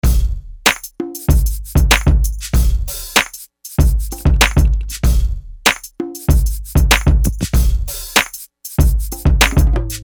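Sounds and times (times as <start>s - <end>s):
percussion: 0.0s - 10.0s.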